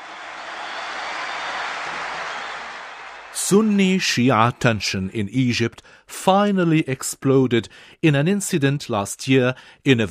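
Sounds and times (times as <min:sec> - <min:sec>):
audience applause: 0:00.0 - 0:03.7
speech: 0:03.4 - 0:10.0.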